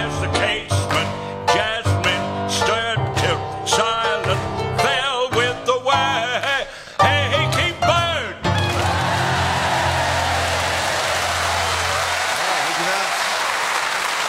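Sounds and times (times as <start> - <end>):
person singing: 0.0 - 9.4
piano: 0.0 - 12.5
Norwich audience clapping along: 8.6 - 14.2.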